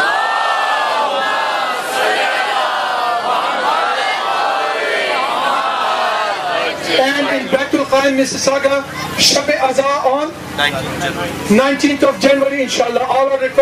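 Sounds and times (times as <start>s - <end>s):
congregation reciting a loud salawat after the Zohar prayer: 0.0s - 7.9s
speech: 7.5s - 13.6s.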